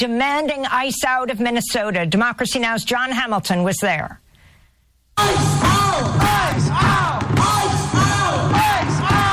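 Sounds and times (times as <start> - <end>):
speech: 0.0 - 4.2
protest crowd of tens of thousands marching through downtown Minneapolis: 5.2 - 9.3.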